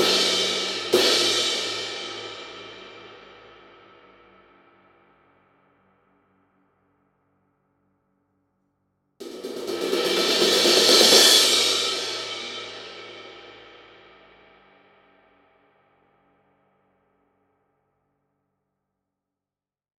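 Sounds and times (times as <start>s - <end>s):
20 crash cymbal: 0.0s - 5.5s, 9.2s - 15.6s.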